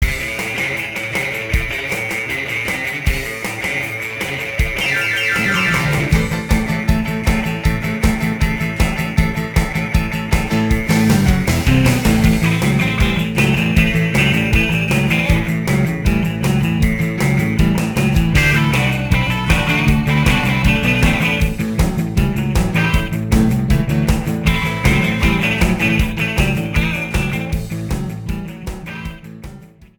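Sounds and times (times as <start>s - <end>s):
funk entrance theme: 0.0s - 29.9s.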